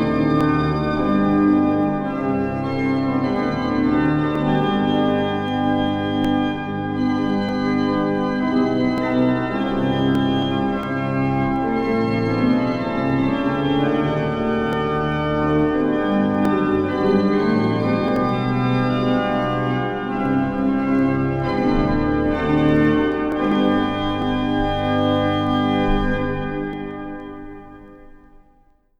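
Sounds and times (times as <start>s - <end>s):
solo organ music: 0.0s - 28.4s.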